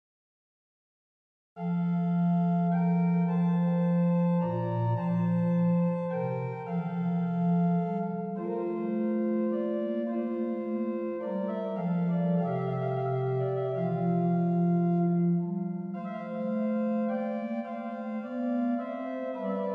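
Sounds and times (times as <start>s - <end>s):
organ music: 1.6s - 19.7s.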